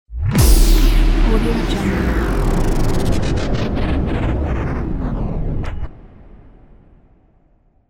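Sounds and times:
shutdown sound: 0.2 - 6.0.

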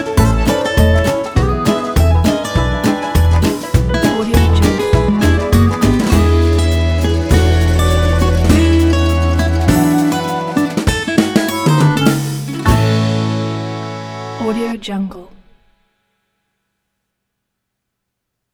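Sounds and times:
jolly retro jazz: 0.0 - 14.5.

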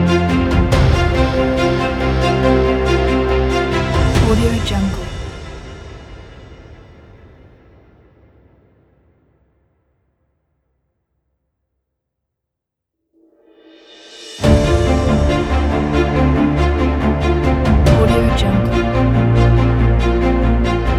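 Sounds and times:
inspirational cinematic dubstep music: 0.0 - 5.6, 14.4 - 20.9.

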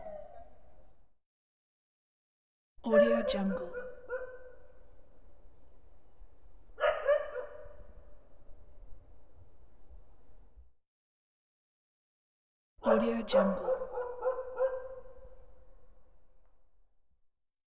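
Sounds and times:
distant dogs barking: 2.9 - 4.7, 6.8 - 7.8, 12.9 - 15.2.

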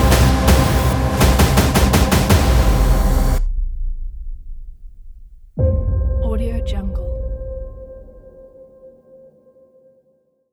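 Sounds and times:
dark horror thriller trailer music: 0.0 - 4.8, 5.6 - 8.6.

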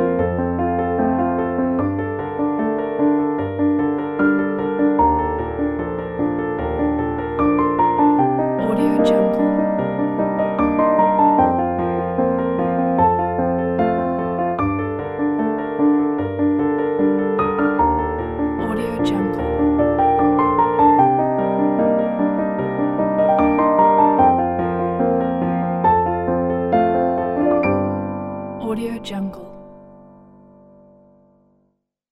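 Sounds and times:
inspiring solo piano background music: 0.0 - 31.7.

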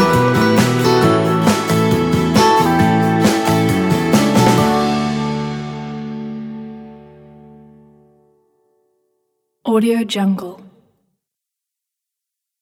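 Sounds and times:
uplifting country music: 0.0 - 7.4.

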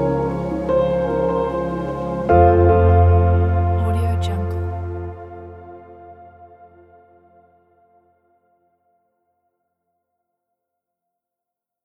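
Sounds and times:
inspiring ambient music: 0.0 - 8.4.

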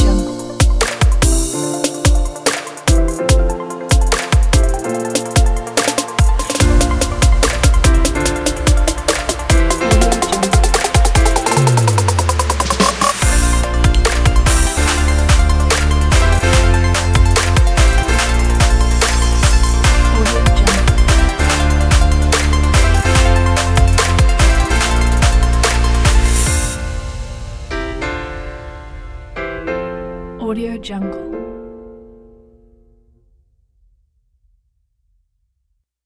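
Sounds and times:
future bass music: 0.0 - 26.8.

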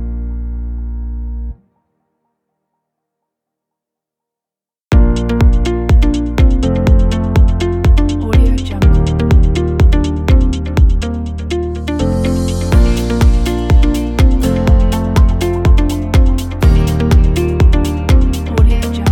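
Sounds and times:
motivating corporate music: 4.9 - 19.0.

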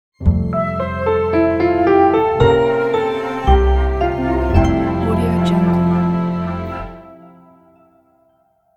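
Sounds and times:
gentle orchestral logo: 0.2 - 7.9.

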